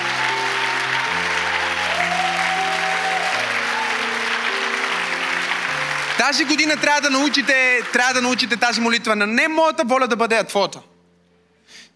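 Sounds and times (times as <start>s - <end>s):
church congregation applause: 0.0s - 9.4s
sustained music chords: 0.0s - 9.4s
speech: 6.3s - 10.9s.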